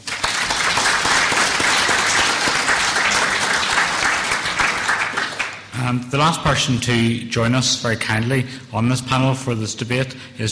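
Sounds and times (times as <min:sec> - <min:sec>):
audience applause: 0:00.0 - 0:05.7
speech: 0:05.8 - 0:10.5.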